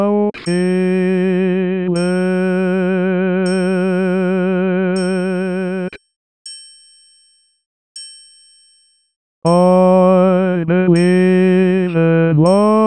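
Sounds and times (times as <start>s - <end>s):
solo low voice: 0.0s - 5.9s, 9.6s - 12.8s.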